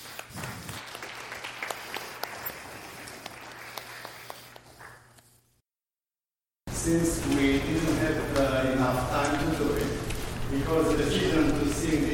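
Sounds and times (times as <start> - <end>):
audience round of applause: 0.0 - 4.6
speech: 6.9 - 12.1.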